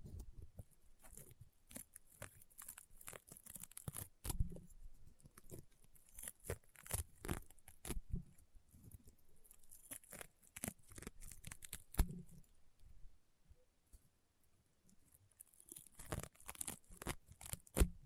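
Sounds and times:
crunchy popping slime crackling: 1.0 - 8.1, 8.8 - 12.5, 15.2 - 18.0.

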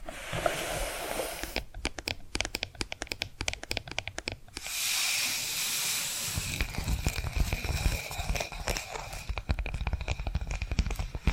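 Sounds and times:
hissing rush: 0.0 - 1.6, 4.6 - 6.9
tapping and scratching: 1.4 - 4.6, 6.3 - 11.3.

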